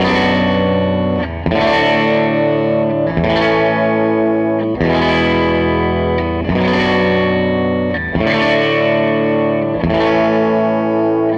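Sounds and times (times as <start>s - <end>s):
SG electric guitar loop: 0.0s - 11.3s.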